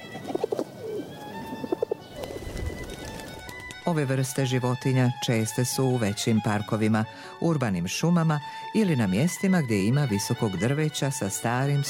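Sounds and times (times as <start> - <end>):
doves cooing: 0.0 - 3.4
speech: 3.9 - 11.8.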